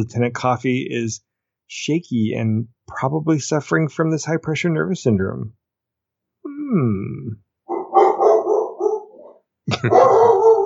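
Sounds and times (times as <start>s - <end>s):
speech: 0.0s - 5.6s, 6.6s - 7.4s, 9.7s - 10.4s
dog barking: 7.7s - 10.6s.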